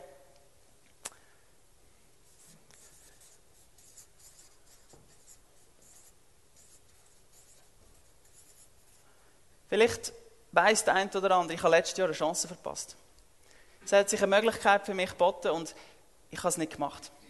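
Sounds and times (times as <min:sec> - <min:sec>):
pen scratching across paper as things are written down: 0:02.3 - 0:09.0
speech: 0:09.7 - 0:13.1, 0:13.8 - 0:17.2.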